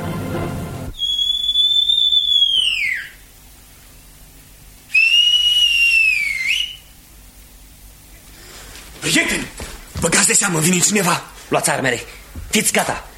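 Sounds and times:
whistle in the night: 0.9 - 3.2, 4.9 - 6.9
speech: 9.2 - 13.1.

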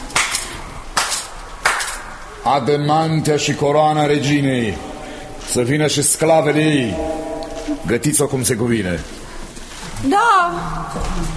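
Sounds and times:
hands clapping to summon slaves: 0.1 - 2.3
speech: 2.4 - 4.9, 5.5 - 9.2, 10.0 - 11.3.

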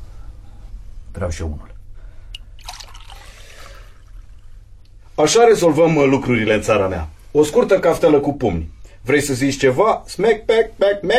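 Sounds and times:
speech: 1.2 - 1.7, 5.2 - 11.1
drink pouring into a glass: 2.6 - 4.5.

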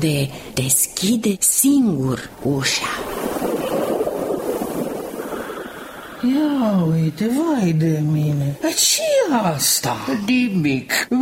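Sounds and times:
speech: 0.0 - 3.5, 6.2 - 11.1
strong wind blowing: 2.8 - 7.2.

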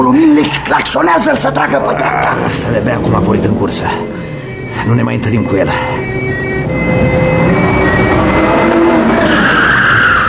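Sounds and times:
speech: 0.0 - 7.1
car engine roaring: 0.7 - 10.2
car tires squealing through a turn: 8.0 - 10.2.

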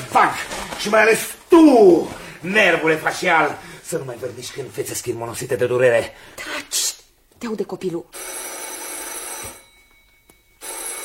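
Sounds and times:
speech: 0.2 - 8.5
telephone ringing: 8.1 - 11.0.

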